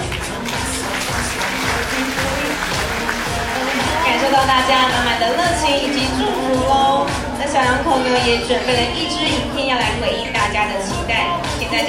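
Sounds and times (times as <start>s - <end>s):
warm applause at a wedding: 0.0s - 6.8s
speech: 4.4s - 11.8s.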